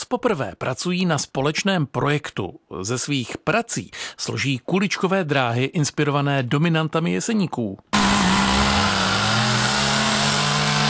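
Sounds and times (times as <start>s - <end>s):
speech: 0.1s - 8.4s
chainsaw carving wood: 7.9s - 10.8s.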